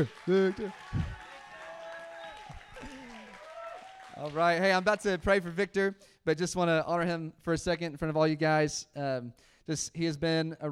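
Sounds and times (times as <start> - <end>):
speech: 0.0 - 1.0, 4.2 - 10.6
audience applause: 0.0 - 5.3.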